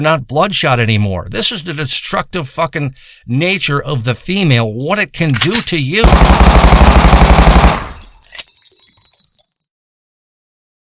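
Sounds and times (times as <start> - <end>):
speech: 0.0 - 7.9
automatic gunfire burst shooting out a ceiling: 6.0 - 8.1.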